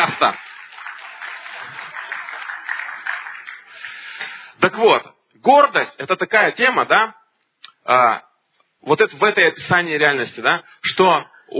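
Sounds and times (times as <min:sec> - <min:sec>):
audience applause: 0:00.0 - 0:04.6
speech: 0:00.2 - 0:00.5, 0:04.6 - 0:07.2, 0:07.8 - 0:11.5.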